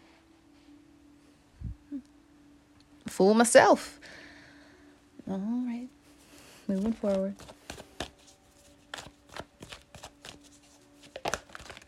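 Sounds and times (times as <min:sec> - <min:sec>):
faint steady hum: 0:00.0 - 0:11.8
speech: 0:03.2 - 0:04.2, 0:05.3 - 0:06.0, 0:06.7 - 0:07.6
tarot cards being drawn and shuffled from a deck: 0:06.7 - 0:11.8.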